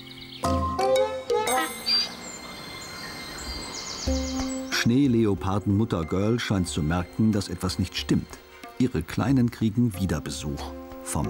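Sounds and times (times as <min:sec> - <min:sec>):
woodpecker calling: 0:00.0 - 0:04.9
speech: 0:04.8 - 0:11.2.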